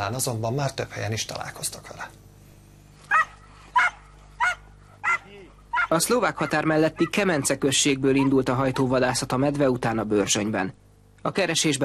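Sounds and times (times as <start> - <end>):
speech: 0.0 - 2.2, 5.9 - 11.8
hunting dogs barking: 3.1 - 9.6.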